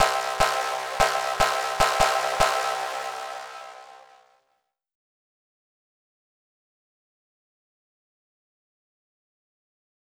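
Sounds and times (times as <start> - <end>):
dark overlay sound: 0.0 - 4.2.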